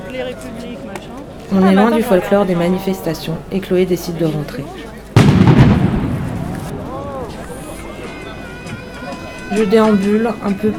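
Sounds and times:
speech: 0:00.1 - 0:04.9, 0:09.5 - 0:10.7
shots at a street protest: 0:05.2 - 0:07.5
blast at a street protest: 0:05.2 - 0:07.8.

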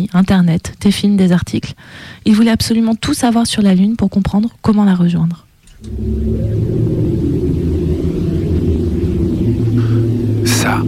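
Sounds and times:
speech: 0:00.0 - 0:06.8, 0:10.7 - 0:10.8
satellite radio waves of the Earth converted to sound by NASA satellite: 0:05.7 - 0:10.8.

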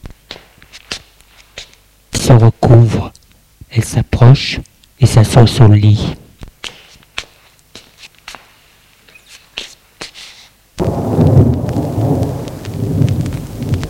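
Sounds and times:
speech: 0:03.8 - 0:06.2
rain drips tapping: 0:10.8 - 0:13.8
thunderclap during a thunderstorm: 0:10.8 - 0:13.8.

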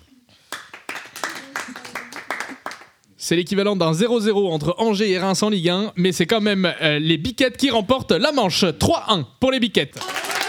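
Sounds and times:
crowd clapping: 0:00.5 - 0:03.0, 0:10.0 - 0:10.4
speech: 0:03.3 - 0:10.2
crowd cheering and shouting: 0:10.0 - 0:10.4.

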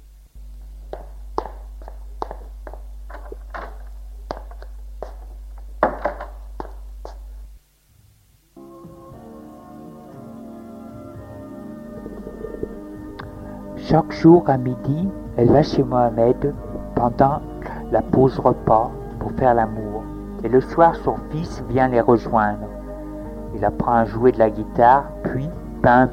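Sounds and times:
low hum: 0:00.0 - 0:21.8
footsteps of a woman going up to her bedroom: 0:00.5 - 0:07.5
tonal musical passage: 0:08.6 - 0:24.4
speech: 0:13.9 - 0:22.8, 0:23.5 - 0:26.1.

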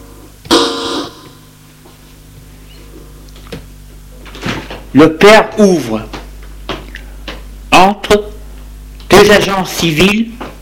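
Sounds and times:
buzzy doorbell ringing: 0:00.5 - 0:01.4
speech: 0:04.9 - 0:06.2, 0:07.8 - 0:08.3, 0:09.2 - 0:10.5.

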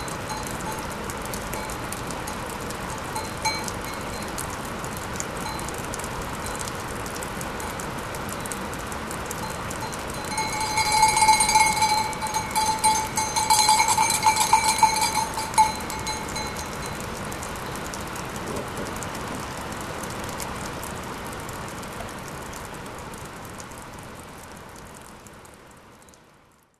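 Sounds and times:
ram's bell ringing in the rain: 0:00.0 - 0:04.5, 0:09.4 - 0:17.8
rain: 0:00.0 - 0:26.7.

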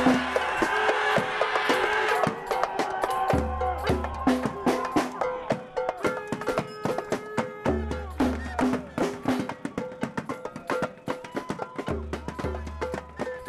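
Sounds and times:
sharp regular beat of drums or claps at a demonstration in Bordeaux: 0:00.0 - 0:13.4.

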